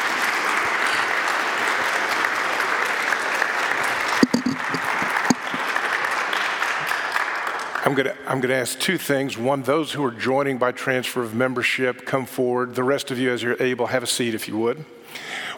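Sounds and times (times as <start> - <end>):
audience applause: 0.0 - 7.8
speech: 7.9 - 15.3.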